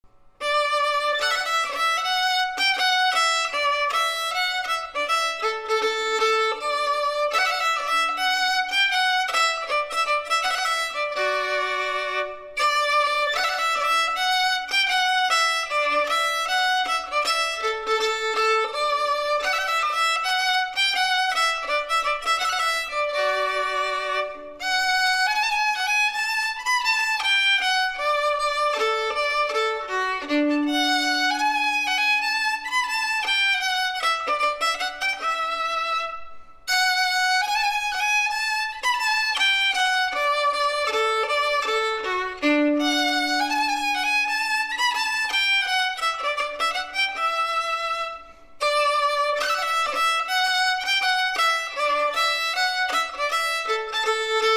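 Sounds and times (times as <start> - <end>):
violinist playing a baroque piece: 0.1 - 54.5.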